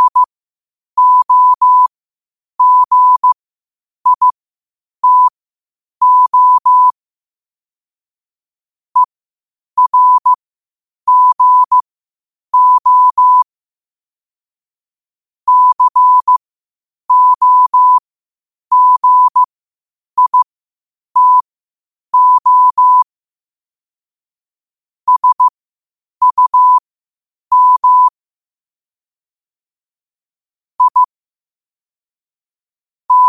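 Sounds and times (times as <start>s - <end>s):
morse code at 5 wpm: 0.0s - 0.3s, 1.0s - 1.9s, 2.6s - 3.4s, 4.1s - 4.4s, 5.0s - 5.3s, 6.0s - 6.9s, 9.8s - 10.4s, 11.1s - 11.8s, 12.6s - 13.4s, 15.5s - 16.4s, 17.1s - 18.0s, 18.7s - 19.5s, 20.2s - 20.4s, 21.2s - 21.4s, 22.2s - 23.0s, 25.1s - 25.5s, 26.2s - 26.8s, 27.5s - 28.1s, 30.8s - 31.1s.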